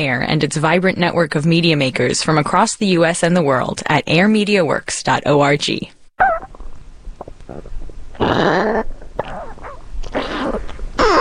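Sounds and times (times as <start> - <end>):
speech: 0.0 - 6.0
dog's stomach gurgling and rumbling: 6.2 - 11.2.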